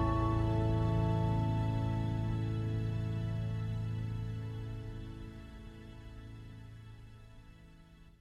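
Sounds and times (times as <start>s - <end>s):
piano music for yoga: 0.0s - 5.0s.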